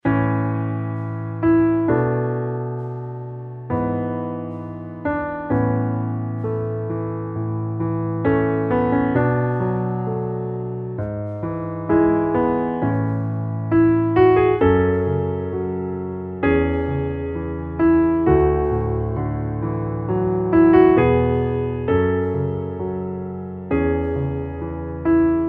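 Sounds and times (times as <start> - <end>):
piano underscore: 0.0 - 25.4.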